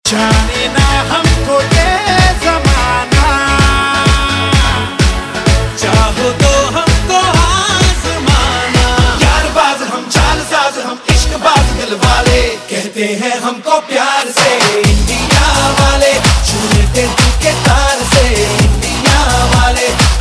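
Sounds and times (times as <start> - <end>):
electronic music: 0.1 - 13.1, 14.0 - 20.1.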